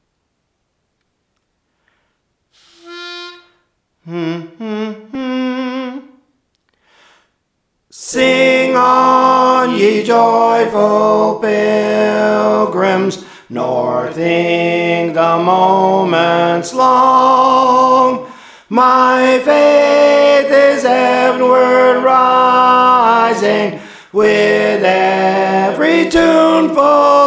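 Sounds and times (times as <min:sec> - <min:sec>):
soprano singing: 0:04.1 - 0:06.2, 0:08.0 - 0:27.2.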